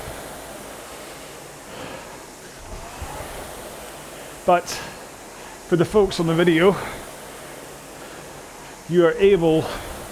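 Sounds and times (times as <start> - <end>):
whoosh of rowing machine flywheel: 0.0 - 10.0
speech: 4.5 - 4.9, 5.7 - 7.0, 8.9 - 9.9.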